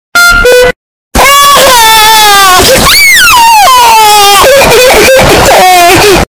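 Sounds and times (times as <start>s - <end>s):
loud distorted crying: 0.4s - 6.2s.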